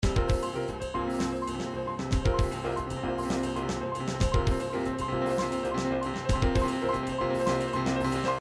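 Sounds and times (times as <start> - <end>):
trip hop music: 0.0 - 8.3.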